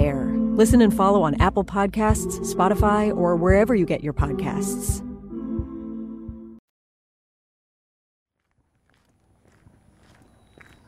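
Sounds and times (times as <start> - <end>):
speech: 0.6 - 5.1
faint footsteps walking over the old Kuper Island Residential School site: 8.4 - 10.8.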